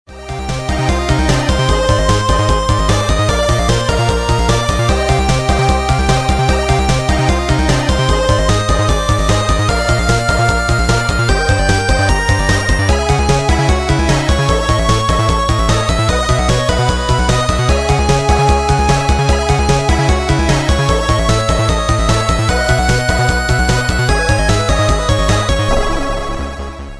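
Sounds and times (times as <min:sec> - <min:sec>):
old video game ringtone: 0:00.7 - 0:25.7.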